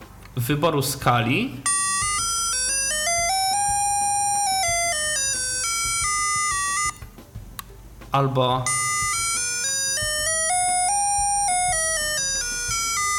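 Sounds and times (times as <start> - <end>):
faint noise: 0.0 - 13.1
speech: 0.4 - 1.8, 8.2 - 8.8
electronic instrument sliding through semitones: 1.6 - 7.1, 8.6 - 13.1.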